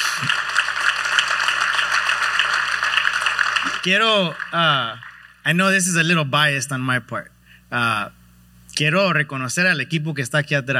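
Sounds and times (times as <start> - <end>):
audience applause: 0.0 - 5.5
speech: 3.8 - 8.2, 8.8 - 10.7.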